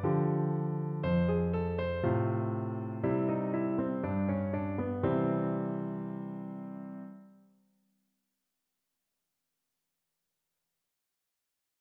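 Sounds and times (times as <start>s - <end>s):
blues piano accompaniment in C major: 0.0s - 7.2s.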